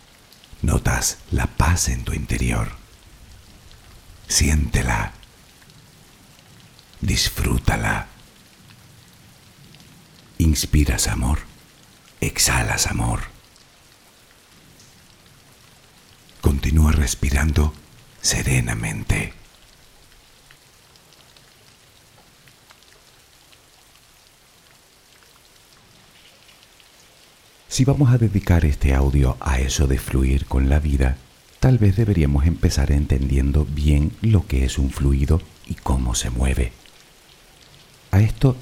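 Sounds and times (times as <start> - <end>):
steady rain falling: 0.0 - 38.6
speech: 0.6 - 2.8, 4.3 - 5.2, 7.0 - 8.1, 10.4 - 11.5, 12.2 - 13.3, 16.6 - 19.4, 27.8 - 36.8, 38.2 - 38.6.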